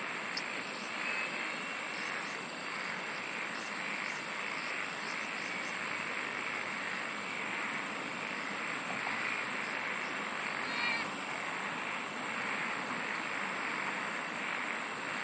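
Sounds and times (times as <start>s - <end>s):
constant hiss: 0.0s - 15.2s
insects singing in a dense chorus: 0.0s - 15.2s.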